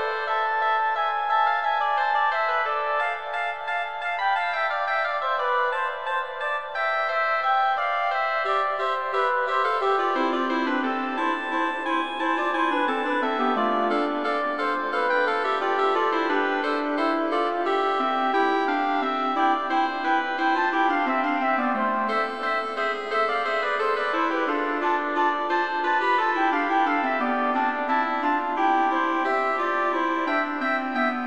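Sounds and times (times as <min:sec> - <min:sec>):
canon for flute, oboe and clarinet: 0:00.0 - 0:31.2.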